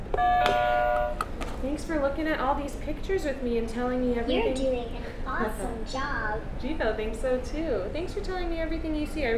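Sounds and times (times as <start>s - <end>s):
electronic buzzer tone: 0.2s - 1.2s
speech: 1.8s - 9.3s.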